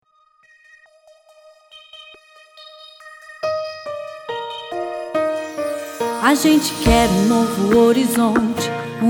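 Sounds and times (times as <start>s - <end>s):
jingle without voiceover: 3.4s - 9.0s.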